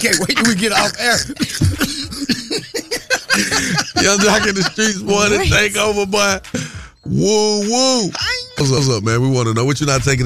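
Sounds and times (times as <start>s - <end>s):
speech: 0.0s - 2.1s, 3.4s - 10.2s
laughter: 0.0s - 5.8s
cough: 0.1s - 2.8s.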